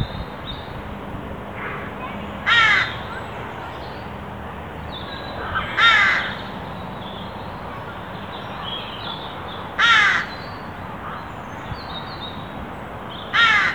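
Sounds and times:
Carrion crow Corvus corone cawing: 1.6s - 3.2s, 5.4s - 6.5s, 9.8s - 10.4s, 13.3s - 13.7s.

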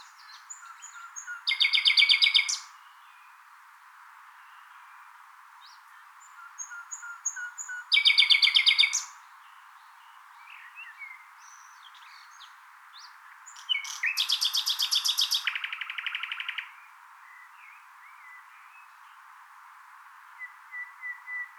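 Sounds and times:
Common nightingale song: 0.0s - 3.6s, 4.3s - 19.4s, 20.2s - 21.5s.

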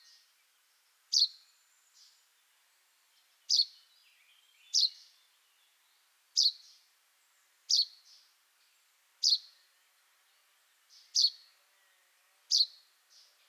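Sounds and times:
common chaffinch Fringilla coelebs giving short sharp high calls: 1.1s - 1.4s, 6.4s - 6.7s, 7.7s - 8.0s, 9.2s - 9.5s, 11.0s - 11.4s, 12.5s - 13.3s.

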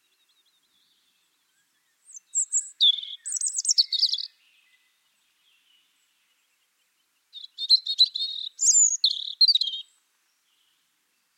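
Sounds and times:
European robin Erithacus rubecula song with high thin notes and trills: 1.8s - 4.9s, 7.3s - 10.0s.

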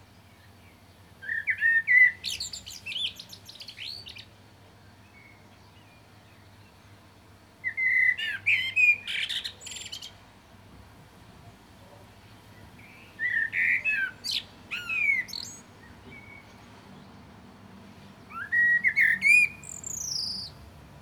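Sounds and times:
common blackbird singing, Turdus merula: 0.3s - 4.4s, 7.6s - 10.2s, 12.4s - 17.2s, 18.2s - 20.7s.

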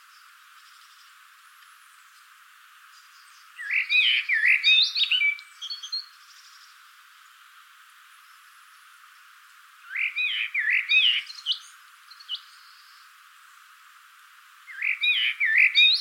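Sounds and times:
common blackbird singing: 3.0s - 6.7s, 9.8s - 13.1s, 14.7s - 15.9s.

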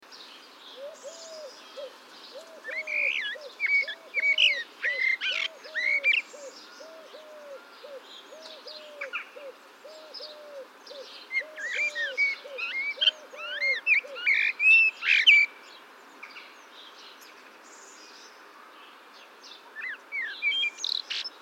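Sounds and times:
common blackbird singing: 0.1s - 18.2s, 19.5s - 21.4s
bird hooting: 0.8s - 14.5s.

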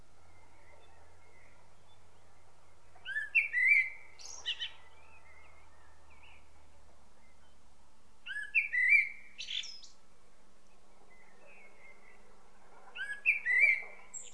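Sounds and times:
common blackbird singing: 0.3s - 6.6s, 8.2s - 10.0s, 10.7s - 12.3s, 12.9s - 14.3s.

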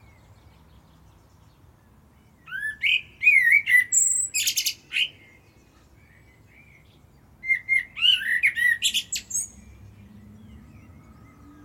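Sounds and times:
common blackbird singing: 0.0s - 11.6s.

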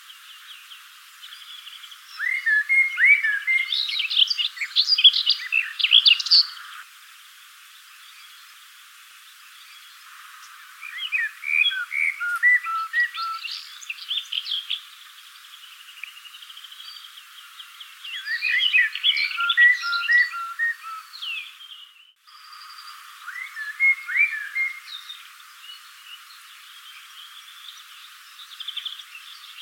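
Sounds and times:
Eurasian blackbird Turdus merula calling: 1.8s - 6.8s, 9.6s - 25.3s.

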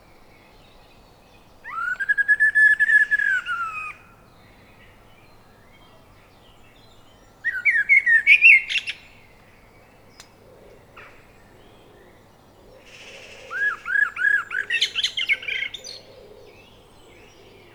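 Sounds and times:
Eurasian blackbird Turdus merula singing: 0.0s - 17.7s.

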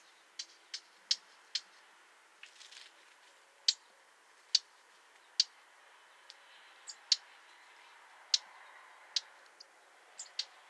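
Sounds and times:
Eurasian blackcap Sylvia atricapilla calling with sharp ticking notes: 0.0s - 1.8s, 3.6s - 3.9s, 4.5s - 4.7s, 5.3s - 5.6s, 6.3s - 7.3s, 8.3s - 10.6s.

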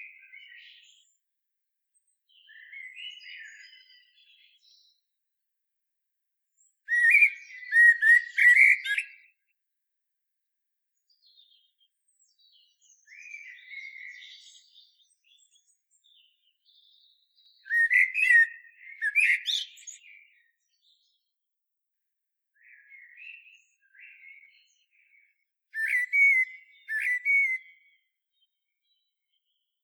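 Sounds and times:
common blackbird singing: 0.0s - 1.2s, 2.3s - 5.0s, 6.6s - 9.3s, 11.1s - 21.2s, 22.6s - 29.7s.

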